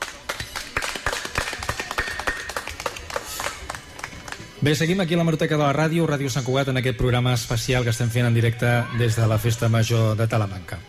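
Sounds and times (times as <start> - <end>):
audience applause: 0.0 - 4.6
speech: 4.6 - 10.8.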